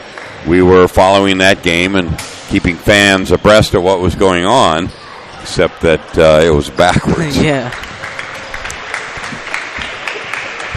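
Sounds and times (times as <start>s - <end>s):
speech: 0.4s - 7.8s
players clapping on basketball court: 7.6s - 10.7s.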